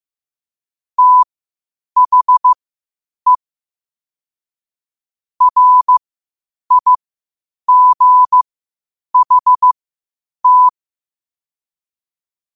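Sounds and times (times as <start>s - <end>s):
morse code at 5 wpm: 1.0s - 1.2s, 2.0s - 2.6s, 5.4s - 6.0s, 6.7s - 7.0s, 7.7s - 8.4s, 9.2s - 9.8s, 10.4s - 10.7s.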